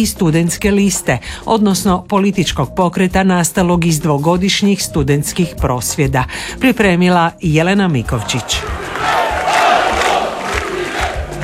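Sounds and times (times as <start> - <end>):
speech: 0.0 - 9.2
crowd of supporters chanting in front of the presidency building: 8.2 - 11.4.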